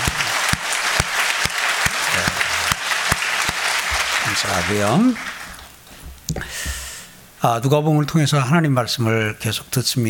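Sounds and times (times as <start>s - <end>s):
audience applauding: 0.0s - 5.7s
speech: 4.4s - 5.3s, 7.4s - 10.0s.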